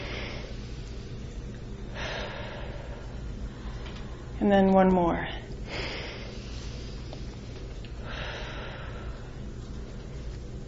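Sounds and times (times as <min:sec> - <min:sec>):
slow deep breathing in through the nose and out through the mouth: 0:00.0 - 0:01.2, 0:01.8 - 0:04.4, 0:05.6 - 0:09.6
speech: 0:04.4 - 0:05.4.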